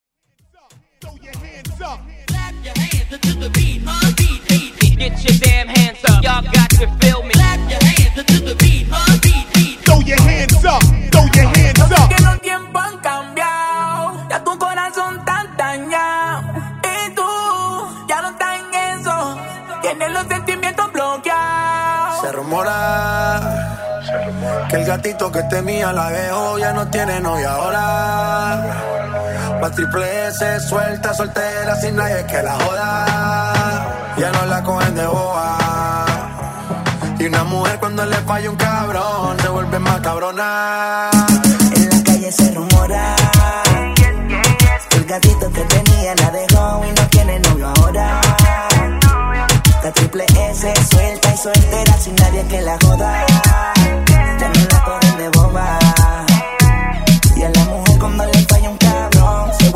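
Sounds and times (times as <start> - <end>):
moombahton hype music: 0.4 - 59.7.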